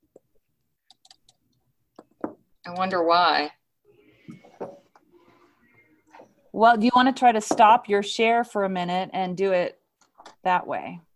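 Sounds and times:
computer mouse clicks: 0.8s - 1.4s
speech: 2.6s - 3.6s, 6.6s - 9.8s, 10.4s - 11.1s.

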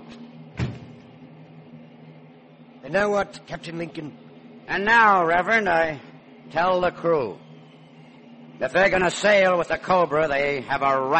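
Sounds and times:
faint hum: 0.0s - 11.1s
bulkhead door on a ship closing: 0.5s - 1.2s
speech: 2.8s - 7.5s, 8.6s - 11.1s.

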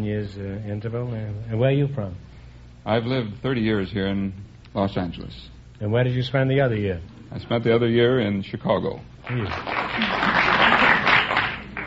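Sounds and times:
speech: 0.0s - 10.3s
audience applauding: 9.2s - 11.8s.

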